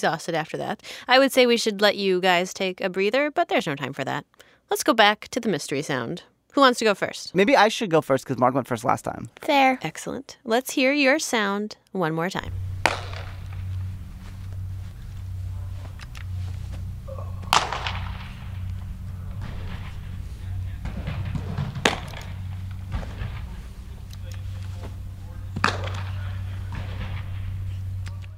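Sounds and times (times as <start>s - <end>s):
speech: 0.0s - 13.0s
steady low hum: 12.4s - 28.3s
baseball smacking into a glove as pitchers play catch indoors: 12.5s - 28.2s.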